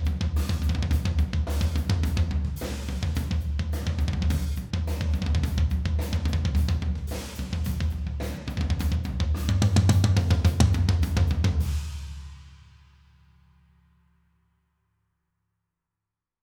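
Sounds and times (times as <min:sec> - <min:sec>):
tom drums: 0:00.0 - 0:12.7.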